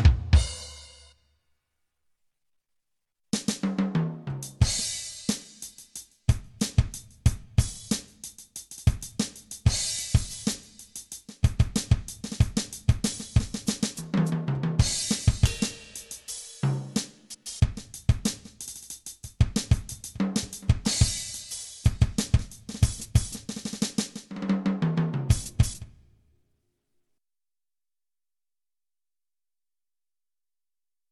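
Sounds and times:
drums: 0.0 - 1.2, 3.3 - 26.2.

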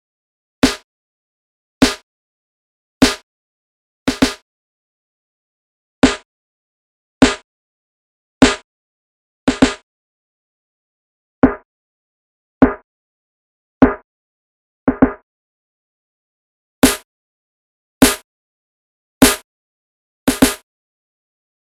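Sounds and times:
snare drum variations: 0.6 - 0.8, 1.8 - 2.0, 3.0 - 3.2, 4.1 - 4.4, 6.0 - 6.2, 7.2 - 7.4, 8.4 - 8.6, 9.5 - 9.8, 16.8 - 17.0, 18.0 - 18.2, 19.2 - 19.4, 20.3 - 20.6.

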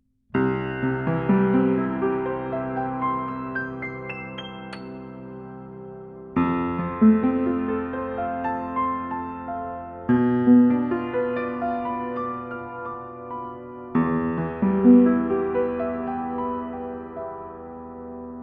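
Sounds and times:
piano recorded with DPA 4060 mic outside wall with boundary: 0.0 - 18.4.

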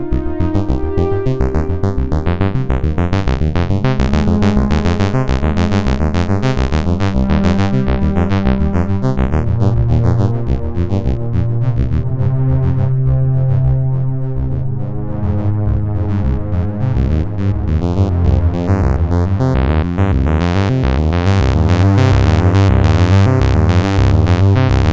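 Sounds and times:
notch-filtered synthesizer strings: 0.0 - 24.9.

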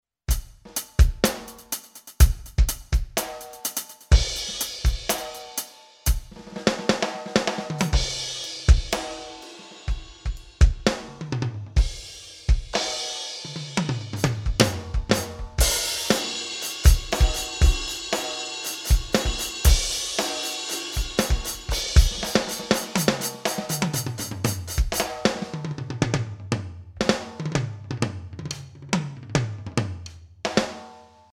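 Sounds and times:
Alesis Crimson II drum kit: 0.3 - 31.2.

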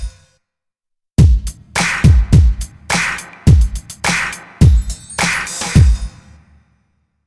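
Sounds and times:
XR20 reverb effect: 1.2 - 6.7.

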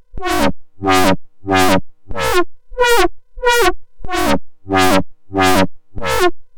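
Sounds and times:
FM synth lifeform sound: 0.2 - 2.3, 3.5 - 6.2.

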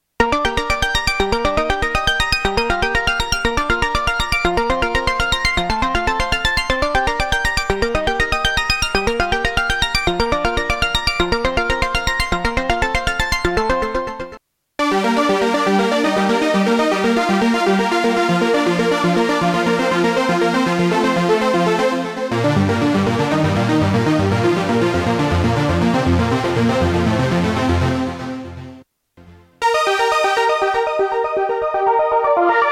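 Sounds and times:
Korg Prologue synthesizer: 0.2 - 32.7.

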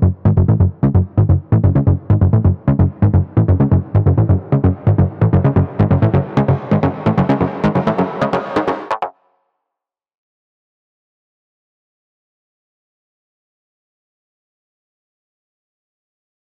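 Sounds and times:
JX3P wet synth bass: 0.0 - 9.1.

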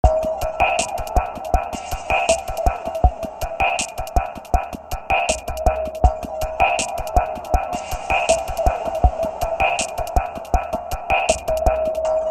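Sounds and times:
music groove: 0.0 - 12.2.

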